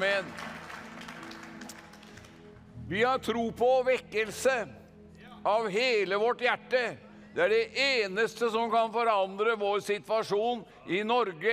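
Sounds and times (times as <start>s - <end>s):
speech: 0.0s - 0.6s, 2.9s - 4.8s, 5.4s - 11.5s
audience applause: 0.0s - 2.4s.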